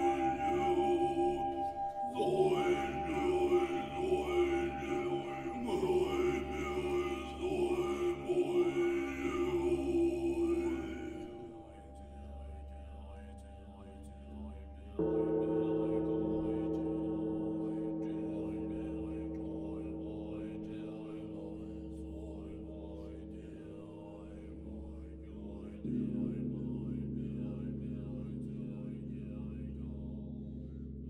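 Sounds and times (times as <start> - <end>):
bright high tones shimmering: 0.0 - 21.7
Buddhist chanting: 0.0 - 31.0.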